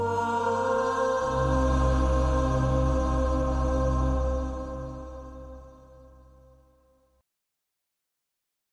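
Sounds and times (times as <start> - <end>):
synth: 0.0 - 6.6.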